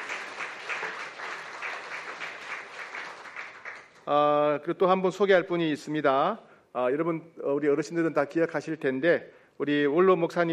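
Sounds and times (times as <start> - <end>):
applause: 0.0 - 4.3
speech: 4.0 - 10.5.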